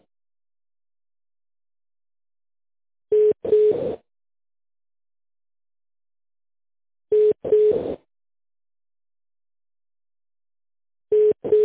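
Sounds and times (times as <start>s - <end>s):
telephone ringback tone while transferring call: 3.1s - 4.0s, 11.1s - 11.6s.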